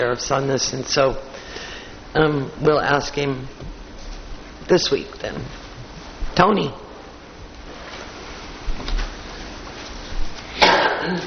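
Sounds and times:
speech: 0.0 - 1.4, 2.1 - 3.8, 4.7 - 5.6, 6.4 - 6.8
sneeze: 10.6 - 11.2.

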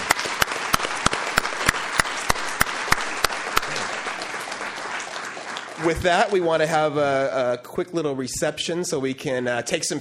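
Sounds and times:
audience applause: 0.0 - 6.8
speech: 5.8 - 9.9.

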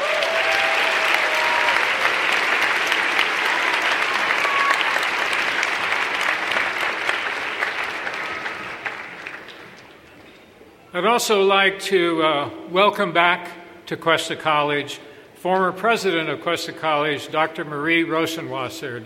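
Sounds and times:
audience applause at ceremony: 0.0 - 10.2
speech: 11.0 - 19.0.

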